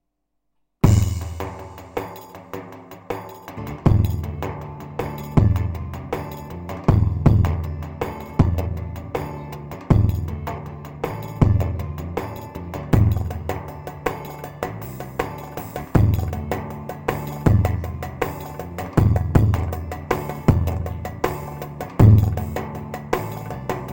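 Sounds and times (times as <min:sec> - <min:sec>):
Korg Pa500 keyboard mixed rhythms: 0:00.8 - 0:23.9.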